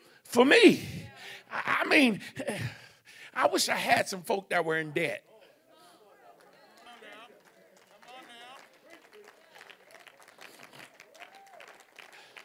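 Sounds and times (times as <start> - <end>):
speech: 0.3 - 2.8, 3.4 - 5.3
scattered audience clapping: 6.2 - 12.4.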